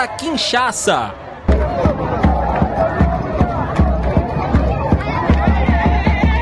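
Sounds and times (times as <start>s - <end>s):
speech: 0.0s - 1.2s
football fans chanting and shouting: 0.0s - 6.4s
rhythmic claps or drum hits: 1.4s - 6.4s.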